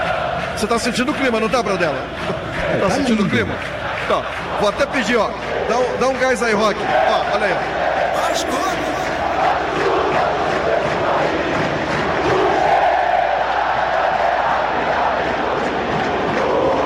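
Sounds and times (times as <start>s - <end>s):
huge stadium crowd singing club anthem: 0.0s - 5.7s, 6.5s - 16.8s
speech: 0.6s - 9.6s.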